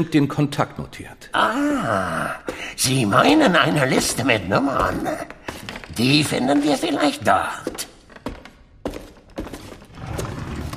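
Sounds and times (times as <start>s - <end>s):
speech: 0.0s - 7.9s
drawer sliding open: 9.6s - 10.7s.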